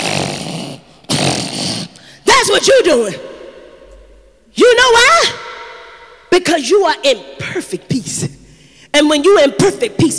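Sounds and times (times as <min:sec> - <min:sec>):
imitated snoring: 0:00.0 - 0:04.3
speech: 0:02.5 - 0:03.3, 0:06.4 - 0:08.4, 0:09.0 - 0:10.1.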